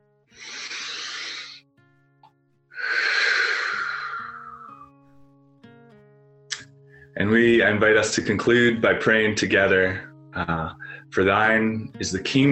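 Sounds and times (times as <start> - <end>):
deep breaths at the close of a prayer: 0.3 - 1.6, 2.8 - 4.9, 10.8 - 11.1
speech: 7.2 - 12.5.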